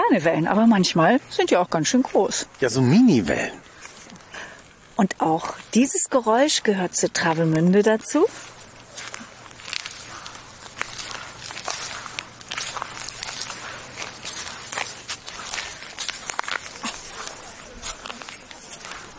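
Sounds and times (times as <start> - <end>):
speech: 0.1 - 3.6, 5.0 - 8.5
footsteps on damp sand with small shells and stones: 8.2 - 19.1.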